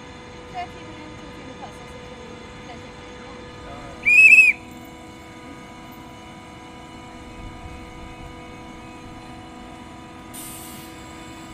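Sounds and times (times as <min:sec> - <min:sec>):
outdoor ambience in front of a train station: 0:00.0 - 0:11.5
high whistle: 0:04.0 - 0:04.7.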